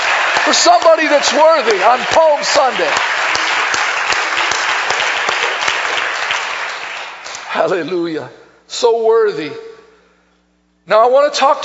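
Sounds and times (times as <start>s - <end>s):
audience clapping: 0.0s - 7.9s
speech: 0.5s - 3.4s, 7.6s - 9.7s, 10.9s - 11.6s.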